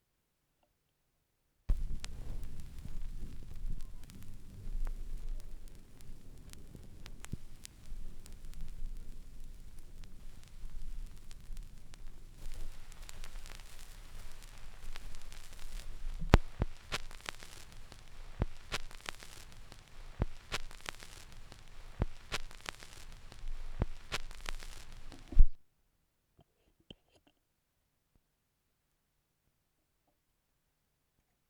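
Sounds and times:
vinyl record noise: 0:01.7 - 0:25.6.

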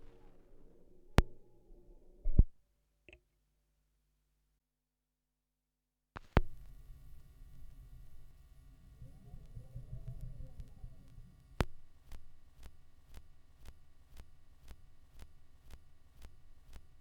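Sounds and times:
vinyl record noise: 0:00.0 - 0:02.5, 0:06.2 - 0:16.9.

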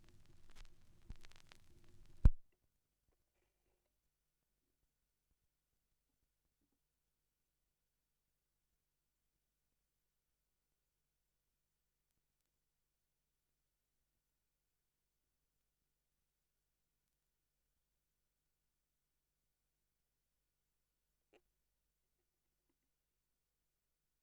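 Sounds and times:
vinyl record noise: 0:00.0 - 0:02.4.

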